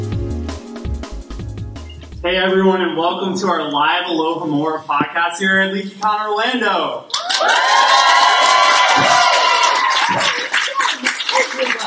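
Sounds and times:
speech: 0:02.2 - 0:08.3
high-pitched shouts and whoops of a live audience: 0:07.1 - 0:11.0
live audience steady applause: 0:07.1 - 0:11.8.

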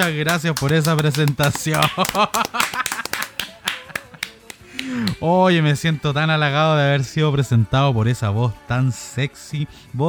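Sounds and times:
speech: 0:00.0 - 0:02.9, 0:04.8 - 0:10.0
hands clapping: 0:00.0 - 0:05.2
laughter: 0:00.6 - 0:05.1.

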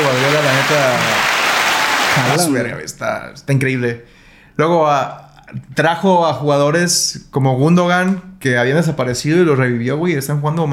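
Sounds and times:
applause: 0:00.0 - 0:02.6
speech: 0:02.3 - 0:10.7.

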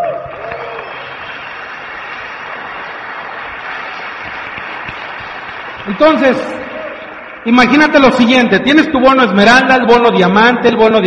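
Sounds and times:
audience applause: 0:00.0 - 0:08.5
speech: 0:05.9 - 0:06.6, 0:07.4 - 0:11.0.

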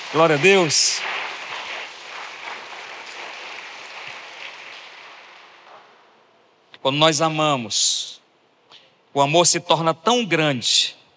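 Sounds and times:
crowd applauding: 0:00.0 - 0:05.9
speech: 0:00.1 - 0:01.2, 0:06.8 - 0:08.2, 0:09.2 - 0:11.0.

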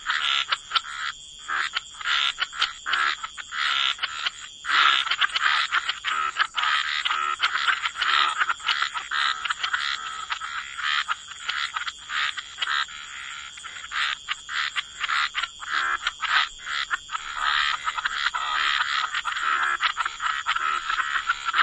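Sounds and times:
many frogs clicking, croaking and trilling: 0:00.0 - 0:21.6.

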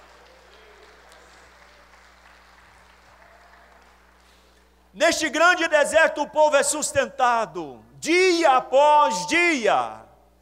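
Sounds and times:
audience applause: 0:00.0 - 0:04.5
low electrical hum: 0:00.0 - 0:10.4
speech: 0:05.0 - 0:10.0.

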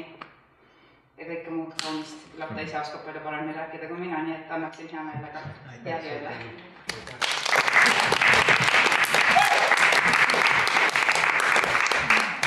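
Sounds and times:
speech: 0:01.3 - 0:06.7
audience applause: 0:06.9 - 0:12.4.

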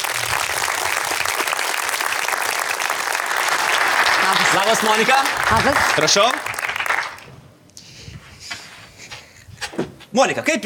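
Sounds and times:
audience applause welcoming a guest: 0:00.0 - 0:07.4
speech: 0:04.7 - 0:06.4, 0:10.2 - 0:10.6.

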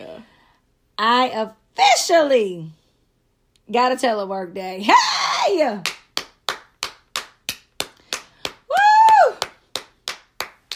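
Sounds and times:
speech: 0:01.0 - 0:02.8, 0:03.7 - 0:06.0
hand clapping: 0:05.8 - 0:10.7.

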